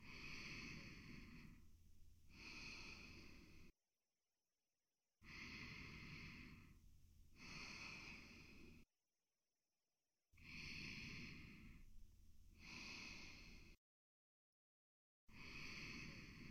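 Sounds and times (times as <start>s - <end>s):
slow sleeping breaths: 0.0s - 3.8s, 5.2s - 8.9s, 10.4s - 13.8s, 15.3s - 16.4s.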